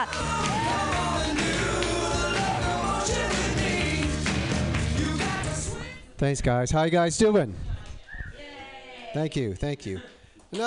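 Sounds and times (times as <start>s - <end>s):
speech: 0.0s - 0.5s, 6.2s - 7.7s, 9.2s - 10.6s
comedy club audience clapping and cheering: 0.0s - 5.7s.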